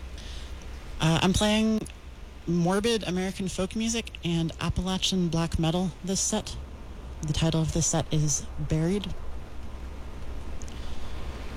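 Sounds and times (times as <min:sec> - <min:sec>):
wind through bare trees on Appalachian mountainside in West Virginia: 0:00.0 - 0:11.5
winter rain in the Appalachian Mountains of West Virginia: 0:00.0 - 0:11.5
speech: 0:01.0 - 0:06.6, 0:07.2 - 0:09.2.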